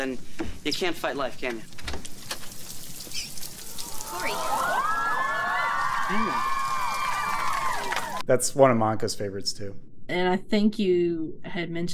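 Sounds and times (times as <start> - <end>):
speech: 0.0 - 2.0, 4.1 - 4.8, 6.1 - 6.5, 8.3 - 11.9
falling rain: 0.0 - 8.2
crowd whooping and cheering: 3.7 - 8.2.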